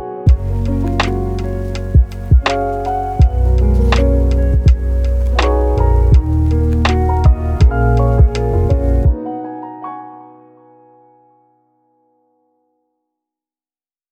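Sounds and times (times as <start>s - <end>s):
lofi hip hop: 0.3s - 9.2s.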